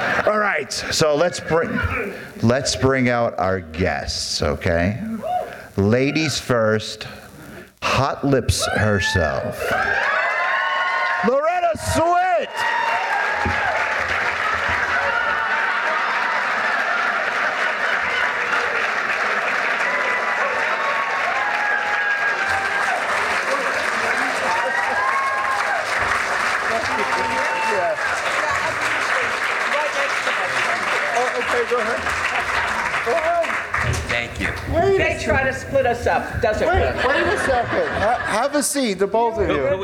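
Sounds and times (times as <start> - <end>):
laughter: 0.0 - 0.6, 36.4 - 39.8
studio audience applause: 0.0 - 0.6, 9.7 - 38.5
speech: 0.6 - 7.2, 8.0 - 10.1, 11.2 - 12.1, 35.9 - 39.8.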